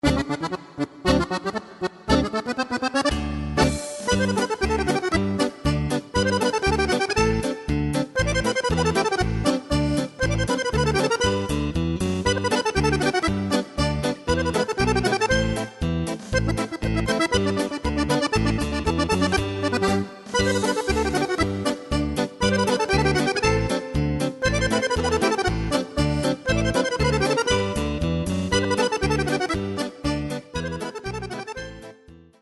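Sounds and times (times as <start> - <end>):
polka music: 0.0 - 32.4.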